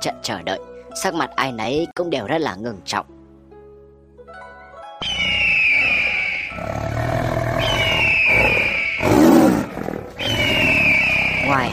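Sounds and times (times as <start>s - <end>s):
speech: 0.0s - 3.2s, 11.5s - 11.7s
wild beasts roaring: 5.0s - 11.7s.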